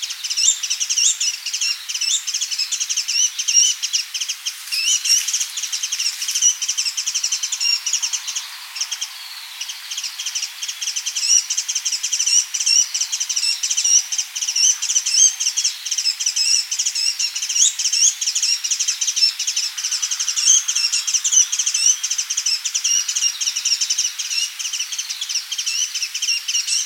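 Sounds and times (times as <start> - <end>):
Muscicapa dauurica calling: 0.2 - 26.8.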